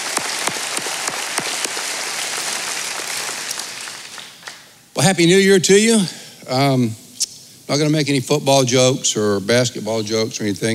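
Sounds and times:
audience applause: 0:00.0 - 0:04.7
speech: 0:05.0 - 0:07.0, 0:07.7 - 0:10.7.

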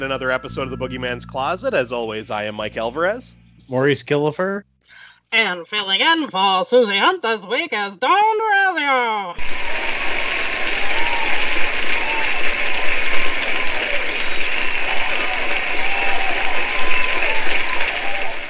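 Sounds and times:
speech: 0:00.0 - 0:09.6
applause: 0:09.4 - 0:18.4.

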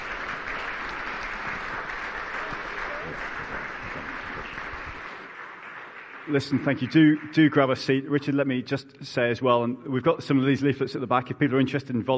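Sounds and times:
crowd applause: 0:00.0 - 0:08.0
speech: 0:06.3 - 0:12.1.

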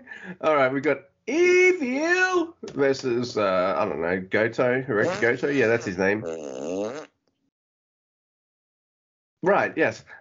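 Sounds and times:
speech: 0:00.2 - 0:07.0, 0:09.4 - 0:10.1
fart into the microphone: 0:05.0 - 0:07.2.

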